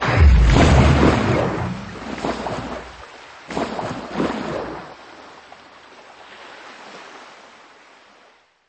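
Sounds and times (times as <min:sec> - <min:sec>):
heavy object splashing into water and sinking: 0:00.0 - 0:04.9.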